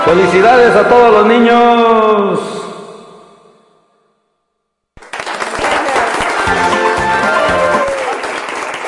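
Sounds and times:
speech: 0:00.1 - 0:02.5
applause: 0:05.0 - 0:08.8.

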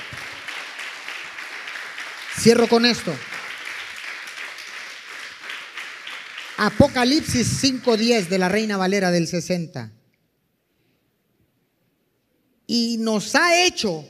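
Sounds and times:
audience applause: 0:00.0 - 0:08.4
speech: 0:02.4 - 0:03.3, 0:06.6 - 0:10.0, 0:13.1 - 0:14.0.

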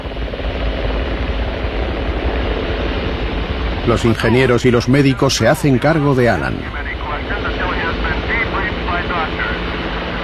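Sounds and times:
helicopter rotor chopping during an ocean rescue: 0:00.0 - 0:10.2
speech: 0:03.9 - 0:06.8.

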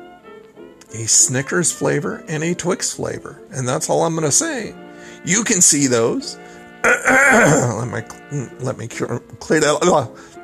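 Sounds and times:
speech: 0:00.9 - 0:10.3
man clearing his throat in the morning: 0:06.9 - 0:07.8.

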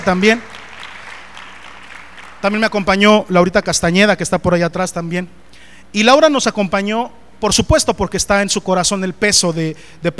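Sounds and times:
speech: 0:00.0 - 0:00.5, 0:02.4 - 0:10.1
audience applause: 0:00.0 - 0:02.7.

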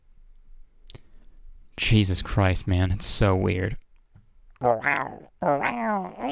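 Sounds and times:
speech: 0:01.9 - 0:03.8, 0:04.6 - 0:06.3
person imitating an animal growl: 0:04.6 - 0:06.3.

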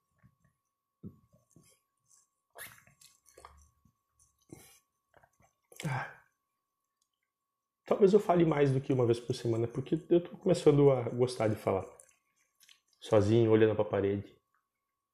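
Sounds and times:
person drinking water: 0:01.3 - 0:06.4, 0:11.4 - 0:13.1
speech: 0:08.0 - 0:12.0, 0:13.1 - 0:14.4.

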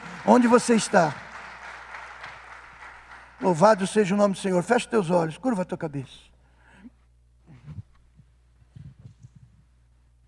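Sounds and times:
audience applause: 0:00.0 - 0:04.5
speech: 0:00.2 - 0:01.2, 0:03.4 - 0:06.3.

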